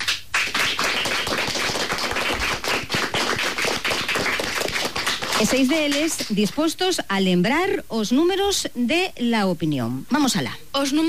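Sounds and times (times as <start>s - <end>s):
schoolchildren applauding in a radio studio: 0.0s - 6.0s
speech: 5.4s - 11.0s.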